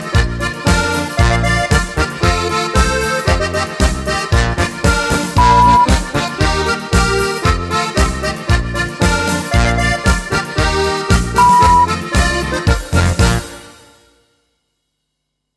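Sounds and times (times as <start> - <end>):
alpine Bavarian folk dance music in E: 0.0 - 13.6.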